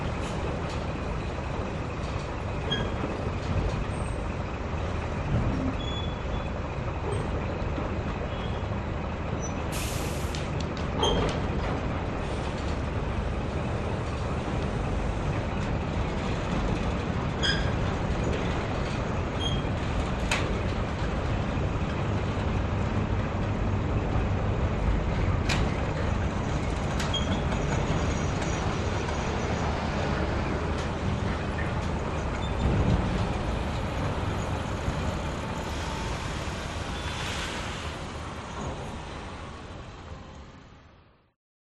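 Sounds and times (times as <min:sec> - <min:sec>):
industrial port ambience: 0:00.0 - 0:41.3.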